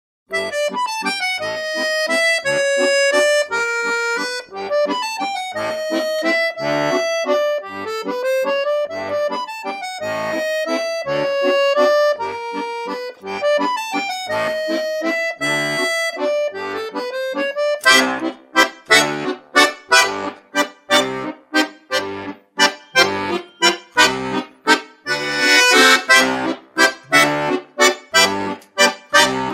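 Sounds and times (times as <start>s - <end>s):
bayan playing a waltz: 0.3s - 29.5s.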